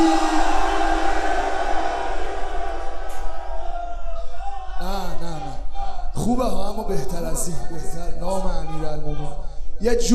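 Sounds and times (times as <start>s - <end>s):
crowd shouting a battle cry: 0.0s - 6.1s
speech: 6.4s - 10.1s.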